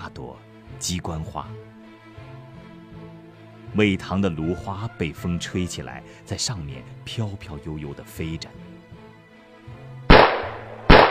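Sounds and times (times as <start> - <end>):
speech: 0.2 - 1.7, 3.7 - 8.6
gunshots on the riverbank: 10.1 - 11.0.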